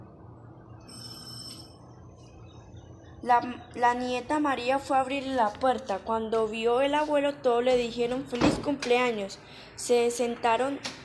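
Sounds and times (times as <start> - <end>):
electronic doorbell ringing: 0.9 - 1.8
speech: 3.2 - 11.0.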